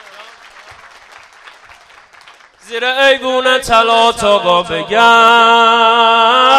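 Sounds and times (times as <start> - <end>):
audience clapping: 0.0 - 3.2
speech: 2.7 - 6.4.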